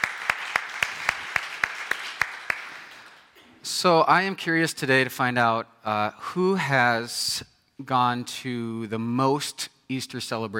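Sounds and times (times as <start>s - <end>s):
audience applause: 0.0s - 3.3s
speech: 3.6s - 10.5s.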